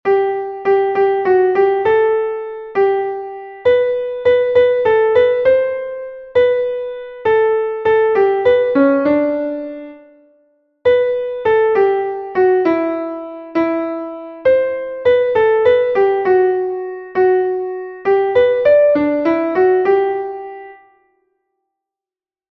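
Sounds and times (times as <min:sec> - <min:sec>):
piano: 0:00.0 - 0:21.2.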